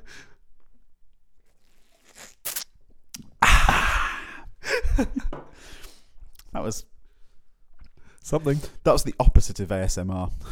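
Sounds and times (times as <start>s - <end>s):
two people drinking with gulping and slurping: 1.4s - 3.4s
mouth and breath sounds: 1.5s - 2.7s
speech: 5.0s - 5.4s, 6.6s - 6.9s, 8.3s - 10.5s.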